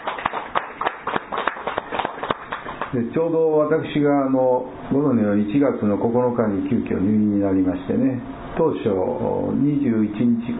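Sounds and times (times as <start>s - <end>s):
clapping for a birthday: 0.0s - 3.0s
speech: 2.9s - 10.5s.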